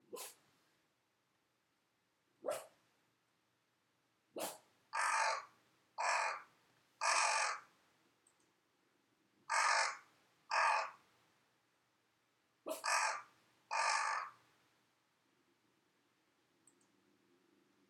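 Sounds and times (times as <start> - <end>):
crow cawing: 4.9 - 7.7, 9.5 - 11.0, 12.7 - 14.4.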